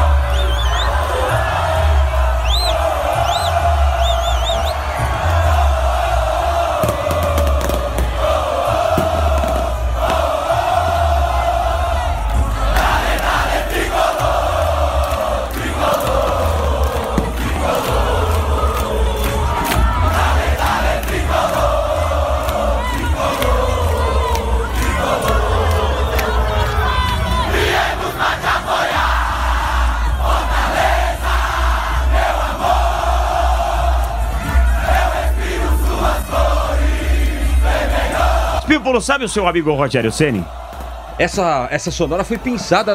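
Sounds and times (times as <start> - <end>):
Fortaleza football fans cheering in stadium: 0.0 - 42.9
speech: 39.0 - 40.6, 41.2 - 42.9.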